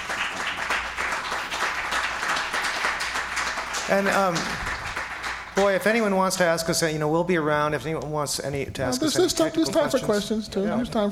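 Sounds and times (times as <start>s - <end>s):
canned applause: 0.0s - 6.6s
speech: 3.9s - 4.7s, 5.6s - 11.1s.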